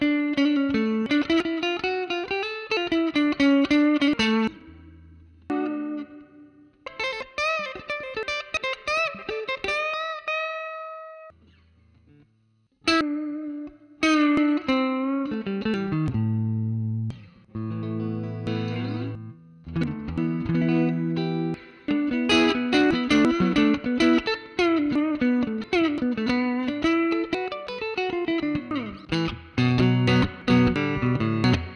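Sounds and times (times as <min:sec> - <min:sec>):
electric guitar: 0:00.0 - 0:31.7.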